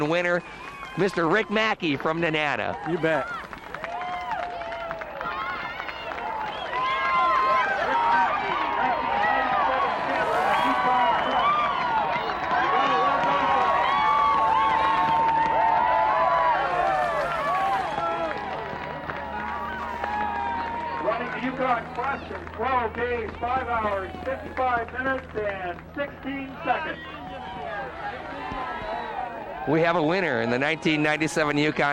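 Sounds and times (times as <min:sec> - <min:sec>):
speech: 0:00.0 - 0:03.4, 0:29.7 - 0:31.9
large crowd cheering and clapping as the 1997 Yukon Quest winner arrives: 0:00.0 - 0:31.9.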